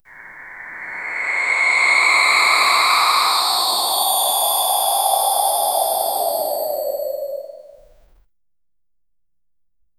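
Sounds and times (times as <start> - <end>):
mythic snake hissing: 0.0 - 7.9.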